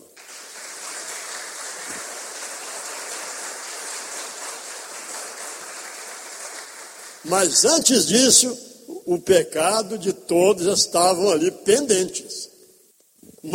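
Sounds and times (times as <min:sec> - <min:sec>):
audience applause: 0:00.0 - 0:07.3
speech: 0:07.2 - 0:12.5.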